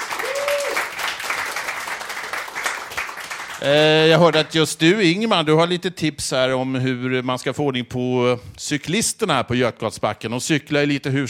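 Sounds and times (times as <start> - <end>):
audience applause: 0.0 - 4.4
speech: 3.6 - 11.2.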